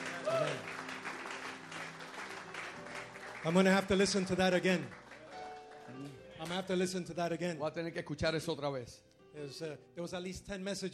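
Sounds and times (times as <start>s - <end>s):
audience applause: 0.0s - 6.6s
speech: 3.4s - 5.0s, 6.4s - 10.9s.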